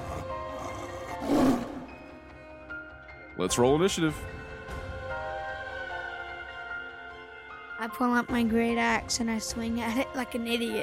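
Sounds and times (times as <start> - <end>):
big cat growl: 0.0 - 2.1
speech: 3.4 - 4.4, 7.8 - 10.8.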